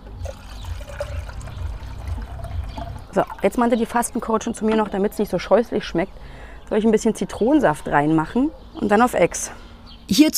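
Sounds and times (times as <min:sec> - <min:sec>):
filling a glass with cold tap water: 0:00.2 - 0:04.2
speech: 0:03.2 - 0:10.3.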